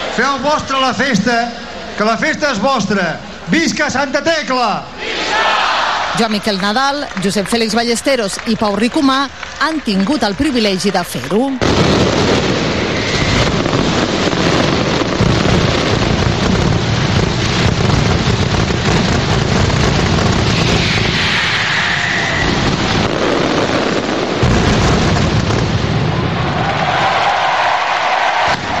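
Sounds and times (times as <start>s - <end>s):
speech: 0.2s - 12.2s
festival firecrackers exploding: 7.1s - 28.7s.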